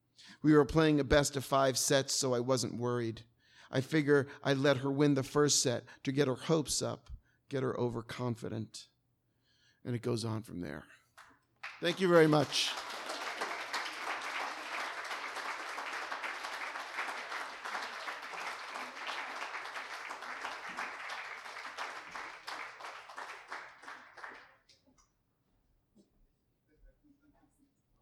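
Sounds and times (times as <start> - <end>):
speech: 0.4 - 8.9, 9.8 - 11.0, 11.8 - 13.0
audience applause: 11.6 - 24.6.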